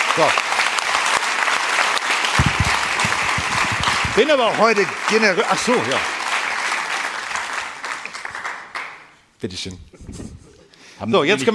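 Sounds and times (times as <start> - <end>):
audience applause: 0.0 - 9.1
speech: 0.2 - 0.6, 4.2 - 6.2, 9.4 - 10.4, 11.0 - 11.5.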